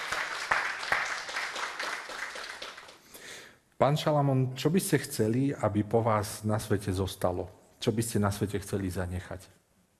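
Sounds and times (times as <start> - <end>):
applause: 0.0 - 3.3
speech: 3.8 - 9.6.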